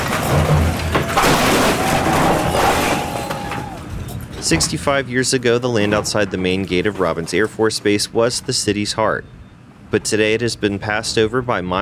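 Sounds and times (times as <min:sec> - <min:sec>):
building demolition crashing and rumbling debris: 0:00.0 - 0:07.7
deep boom: 0:01.2 - 0:04.0
speech: 0:04.5 - 0:11.8.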